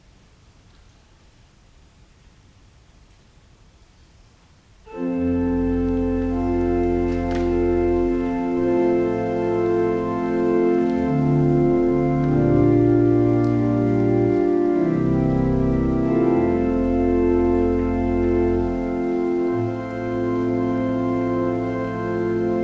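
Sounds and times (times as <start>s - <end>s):
organ music: 4.9s - 22.6s.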